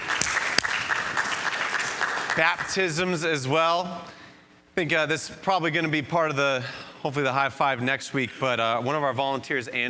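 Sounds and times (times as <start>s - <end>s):
audience applause: 0.0s - 2.8s
speech: 2.4s - 4.2s, 4.8s - 9.8s.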